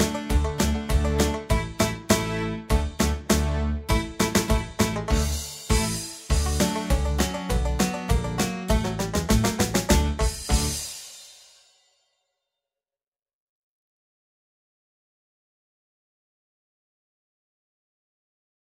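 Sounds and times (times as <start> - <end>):
polka accompaniment only: 0.0 - 11.4.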